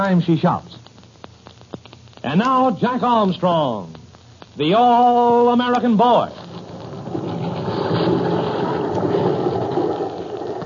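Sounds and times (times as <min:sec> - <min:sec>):
speech: 0:00.0 - 0:00.8, 0:02.2 - 0:04.0, 0:04.6 - 0:06.4
half gale wind around a schooner: 0:05.8 - 0:10.6
storm waves around a schooner in a Pacific half gale: 0:06.3 - 0:10.6.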